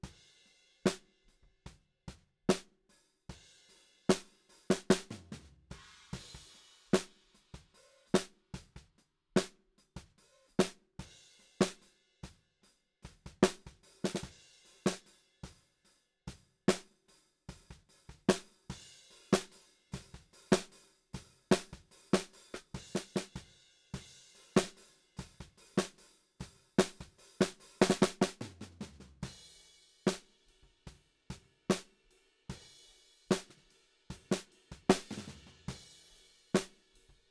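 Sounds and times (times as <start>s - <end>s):
snare drum: 0.9s - 1.1s, 2.5s - 2.7s, 4.1s - 8.8s, 10.5s - 10.8s, 11.6s - 11.9s, 13.1s - 15.1s, 17.6s - 30.4s, 31.7s - 32.0s, 33.3s - 37.2s.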